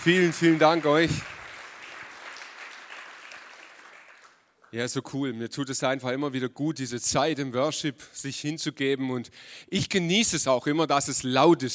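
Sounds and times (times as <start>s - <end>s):
speech: 0.0s - 1.4s, 4.7s - 11.7s
audience applause for the band: 0.0s - 4.4s.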